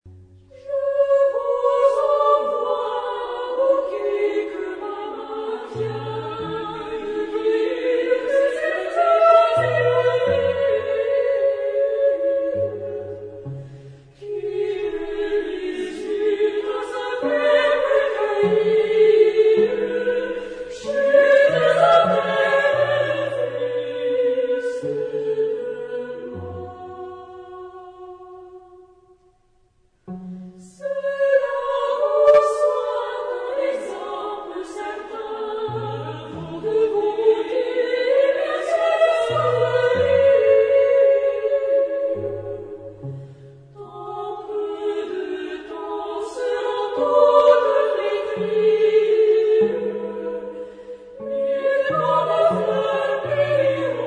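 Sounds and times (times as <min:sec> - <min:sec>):
chorus singing chansons: 0:00.4 - 0:29.4, 0:30.0 - 0:54.0.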